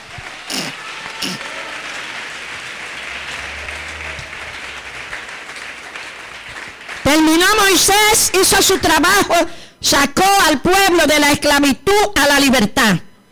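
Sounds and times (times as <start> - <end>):
audience applause: 0.0 - 7.9
speech: 7.5 - 13.1.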